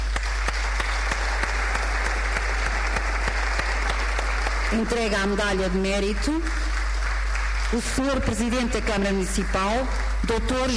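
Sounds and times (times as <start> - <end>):
audience applause: 0.0 - 10.7
speech: 4.7 - 6.7, 7.7 - 10.7.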